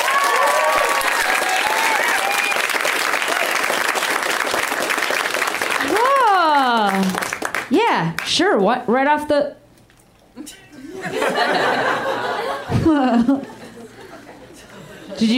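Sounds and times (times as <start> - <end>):
audience applause: 0.0 - 7.7
speech: 8.0 - 9.6, 12.9 - 13.5
laughter: 10.8 - 15.3.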